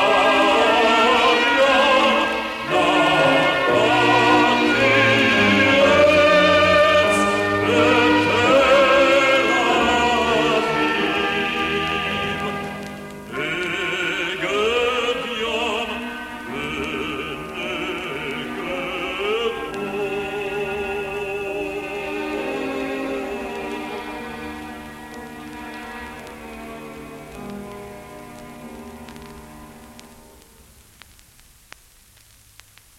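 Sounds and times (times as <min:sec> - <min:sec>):
chanting: 0:00.0 - 0:24.7.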